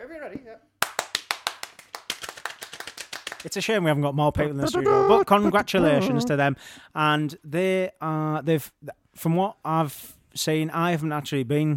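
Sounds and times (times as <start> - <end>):
speech: 0.2 - 0.7, 3.4 - 11.7
small round of hand clapping: 0.8 - 3.6.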